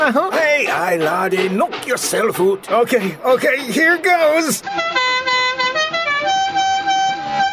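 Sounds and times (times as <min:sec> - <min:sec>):
speech: 0:00.0 - 0:05.0
brassy car horn playing a melody: 0:04.6 - 0:07.5.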